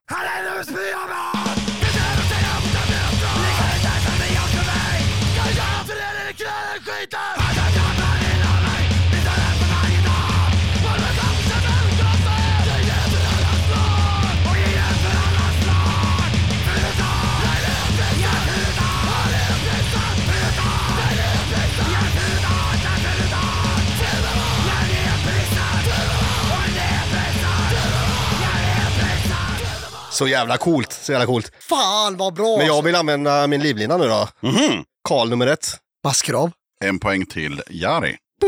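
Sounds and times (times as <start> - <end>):
punk rock song: 0.2 - 30.4
speech: 30.2 - 38.4.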